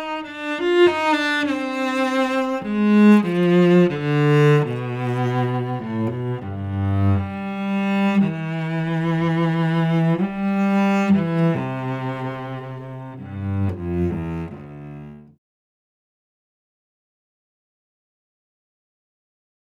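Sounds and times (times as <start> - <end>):
cello: 0.0 - 15.4.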